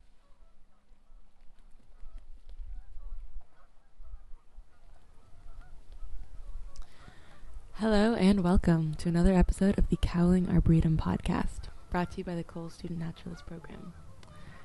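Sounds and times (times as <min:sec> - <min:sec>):
rustle: 0:00.0 - 0:07.8
geese honking: 0:00.0 - 0:14.6
speech: 0:07.8 - 0:14.0.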